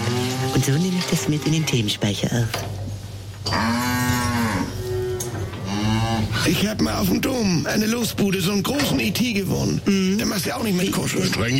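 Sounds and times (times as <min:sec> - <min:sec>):
speech: 0:00.6 - 0:02.8, 0:06.4 - 0:11.5
cow mooing: 0:03.4 - 0:06.6.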